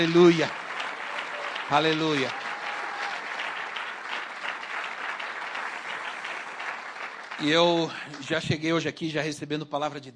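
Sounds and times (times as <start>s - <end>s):
speech: 0.0s - 0.6s, 1.7s - 2.4s, 7.4s - 10.1s
audience applause: 0.0s - 8.7s.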